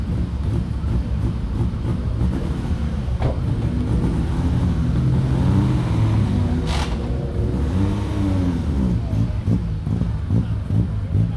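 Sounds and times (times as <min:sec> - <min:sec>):
cars starting up and idling: 0:00.0 - 0:11.3.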